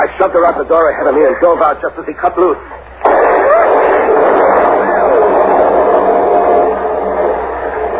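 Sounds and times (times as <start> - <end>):
speech: 0.2 - 2.8
building exploding in flames: 3.0 - 7.9
loud steady roar of flames: 3.0 - 7.9.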